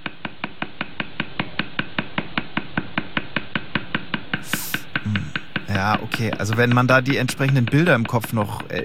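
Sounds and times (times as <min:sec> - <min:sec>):
stick hammer tapping hand-tattoo needles: 0:00.0 - 0:08.8
brief hiss: 0:04.5 - 0:04.9
speech: 0:05.8 - 0:08.8.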